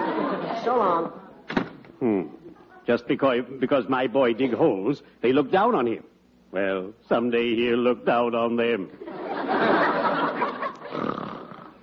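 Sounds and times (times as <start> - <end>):
laughter: 0.0 - 0.9, 9.0 - 11.2
speech: 0.7 - 1.2, 2.0 - 9.9
man snoring: 10.9 - 11.7.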